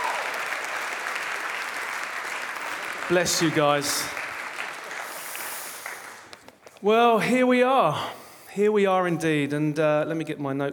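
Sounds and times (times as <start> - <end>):
audience applauding: 0.0 - 6.8
speech: 3.1 - 4.2, 6.8 - 10.7.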